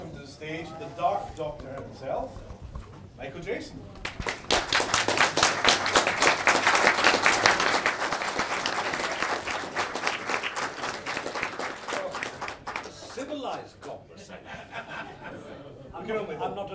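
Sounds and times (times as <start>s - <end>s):
speech: 0.4s - 2.5s, 3.2s - 4.3s, 13.5s - 14.5s, 16.0s - 16.7s
audience applause: 4.0s - 13.6s
laughter: 14.1s - 15.8s.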